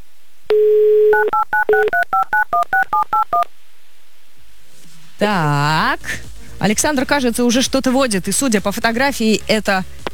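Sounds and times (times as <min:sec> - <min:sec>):
telephone dial tone: 0:00.5 - 0:03.4
speech: 0:05.2 - 0:10.0.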